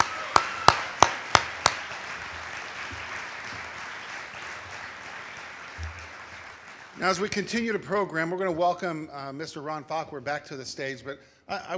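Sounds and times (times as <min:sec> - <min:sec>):
round of applause: 0:00.0 - 0:07.8
speech: 0:07.0 - 0:11.7.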